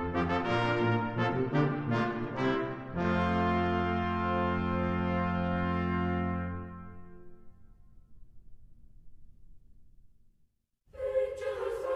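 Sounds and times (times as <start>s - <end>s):
brass quintet playing: 0.0s - 7.4s.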